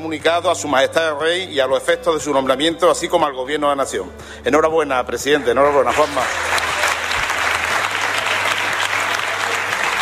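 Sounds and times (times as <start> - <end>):
speech: 0.0 - 6.6
parliamentary chamber applause: 5.6 - 10.0.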